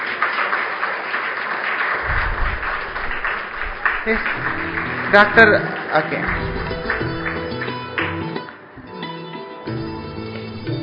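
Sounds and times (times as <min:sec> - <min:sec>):
audience applauding to welcome a guest: 0:00.0 - 0:08.7
low rumble: 0:02.0 - 0:07.6
speech: 0:04.0 - 0:06.7.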